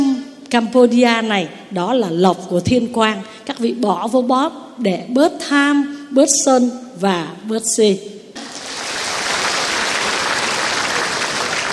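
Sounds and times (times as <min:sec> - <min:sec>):
speech: 0:00.5 - 0:08.2
audience applauding a monk's talk: 0:08.4 - 0:11.7.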